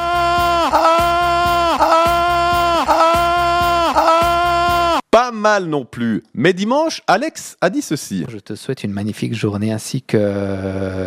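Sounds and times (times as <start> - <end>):
person imitating a rutting stag bellowing: 0.0 - 5.0
speech: 5.4 - 11.0.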